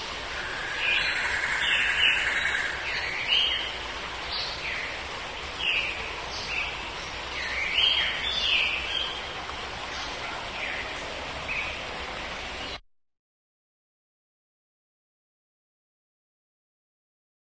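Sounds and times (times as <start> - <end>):
jungle ambience: 0.0 - 12.8.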